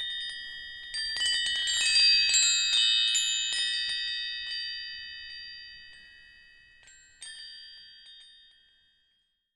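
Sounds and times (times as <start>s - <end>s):
small copper wind chimes: 0.0s - 9.4s.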